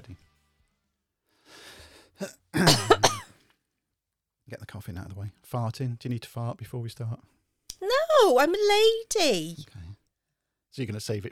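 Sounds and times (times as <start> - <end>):
speech: 2.2 - 2.4, 5.5 - 7.4, 8.2 - 9.8, 10.7 - 11.2
throat clearing: 2.2 - 3.2
rough voiced cough: 2.2 - 3.3.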